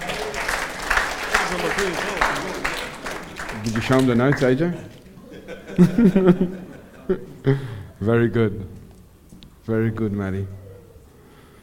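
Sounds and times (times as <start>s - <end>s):
audience applause: 0.0s - 5.1s
laughter: 0.0s - 8.0s
speech: 1.5s - 2.6s, 3.6s - 5.0s, 5.8s - 8.8s, 9.6s - 10.6s.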